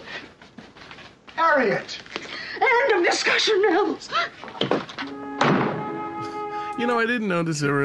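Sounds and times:
speech: 0:01.5 - 0:02.1, 0:02.7 - 0:05.2, 0:06.8 - 0:07.8
door slamming: 0:04.6 - 0:05.9.

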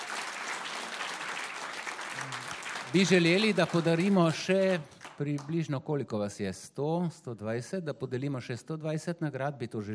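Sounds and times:
audience applause: 0:00.0 - 0:05.4
speech: 0:02.9 - 0:09.9.

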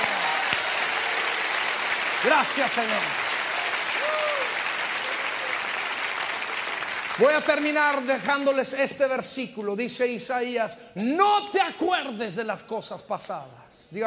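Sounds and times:
audience applauding: 0:00.0 - 0:08.6
speech: 0:02.2 - 0:03.3, 0:07.2 - 0:14.0.

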